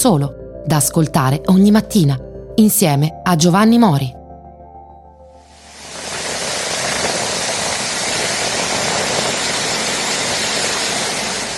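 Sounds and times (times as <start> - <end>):
speech: 0.0 - 4.2
torrential rain in Dubai: 5.4 - 11.5.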